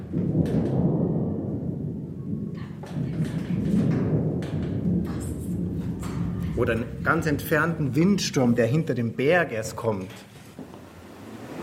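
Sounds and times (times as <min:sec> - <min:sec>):
voice imitating a distant thunder rumble: 0:00.3 - 0:09.2
speech: 0:06.6 - 0:10.3.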